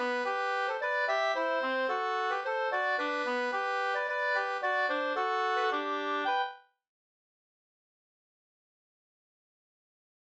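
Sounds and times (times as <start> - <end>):
two-part polska folk dance tune: 0.0 - 6.6.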